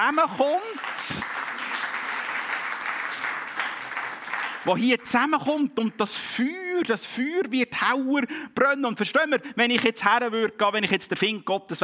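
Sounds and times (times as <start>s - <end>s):
speech: 0.0s - 1.6s, 4.6s - 11.8s
audience applause: 0.0s - 5.1s.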